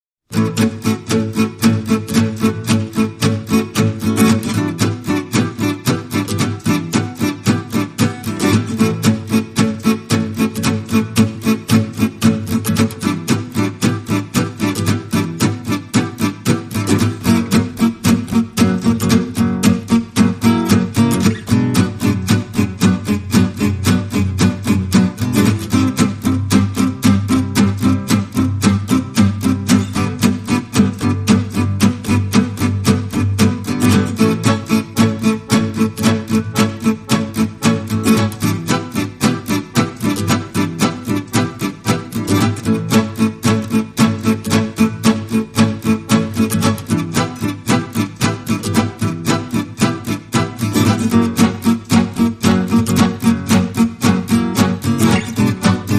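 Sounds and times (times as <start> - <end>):
guitars: 0.2 - 55.9
accordion: 0.3 - 55.9.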